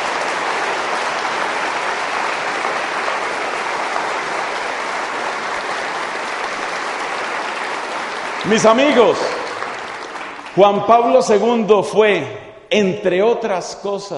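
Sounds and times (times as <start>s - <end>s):
audience applause: 0.0s - 11.3s
speech: 8.5s - 9.4s, 10.6s - 14.1s.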